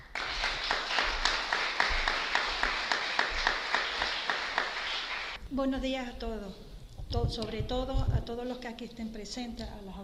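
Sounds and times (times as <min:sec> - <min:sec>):
audience applause: 0:00.0 - 0:05.4
speech: 0:05.5 - 0:10.0.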